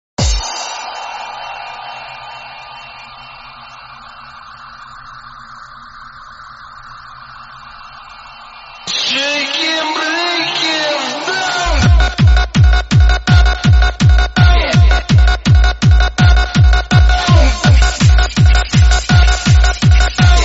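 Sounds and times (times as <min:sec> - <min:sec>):
hardbass music: 0:08.9 - 0:20.4.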